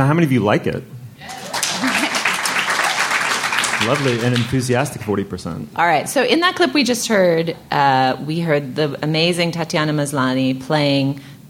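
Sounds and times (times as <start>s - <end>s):
speech: 0.0s - 1.3s, 3.8s - 11.3s
person cheering: 1.2s - 2.9s
laughter: 1.2s - 4.6s
audience applause: 1.2s - 4.9s.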